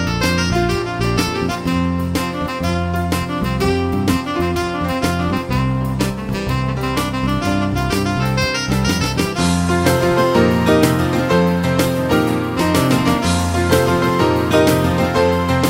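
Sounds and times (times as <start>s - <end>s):
saxophone lead: 0.0s - 15.6s.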